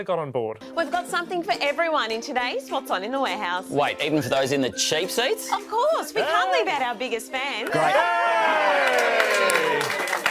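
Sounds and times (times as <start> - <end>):
speech: 0.0 - 10.2
people clapping: 7.6 - 10.2.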